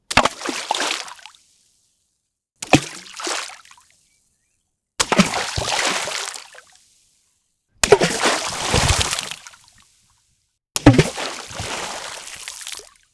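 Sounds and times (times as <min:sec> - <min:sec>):
rocks thrown in water: 0:02.6 - 0:03.7, 0:05.0 - 0:06.6, 0:07.8 - 0:09.8, 0:10.8 - 0:12.9.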